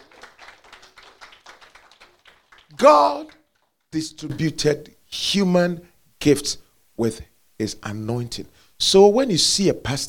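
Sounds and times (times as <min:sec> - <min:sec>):
audience clapping: 0:00.0 - 0:03.9
speech: 0:02.8 - 0:10.0.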